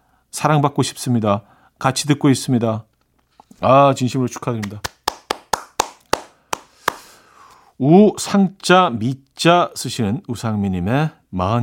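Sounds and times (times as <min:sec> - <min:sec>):
speech: 0:00.4 - 0:02.9, 0:03.6 - 0:04.9, 0:07.8 - 0:11.6
hand clapping: 0:04.4 - 0:07.2.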